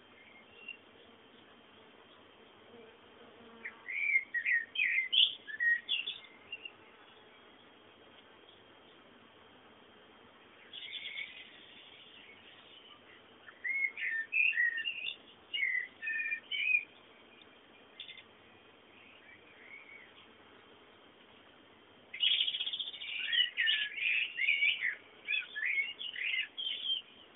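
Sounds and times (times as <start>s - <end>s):
bird song: 0.0s - 1.5s, 3.5s - 7.8s, 10.4s - 20.4s, 22.1s - 27.3s.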